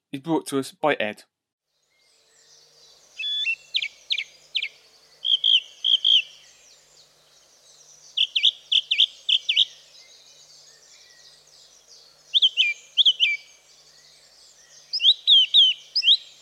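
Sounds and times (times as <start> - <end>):
speech: 0.1 - 1.3
song thrush singing: 1.8 - 16.4.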